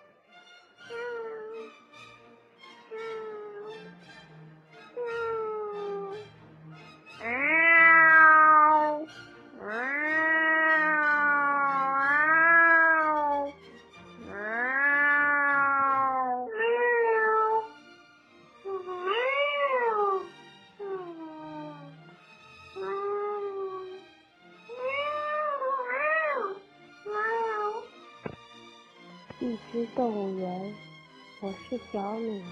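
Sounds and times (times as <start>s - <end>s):
person imitating cat meows: 0.9s - 1.7s, 5.0s - 6.2s, 7.2s - 13.6s, 14.2s - 17.7s, 18.7s - 21.9s, 22.7s - 24.0s, 24.7s - 27.9s
speech: 31.7s - 32.5s.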